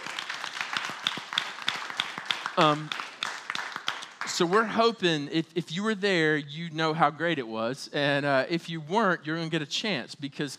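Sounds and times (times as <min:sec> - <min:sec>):
audience clapping: 0:00.0 - 0:04.9
speech: 0:02.6 - 0:03.0, 0:04.4 - 0:10.5.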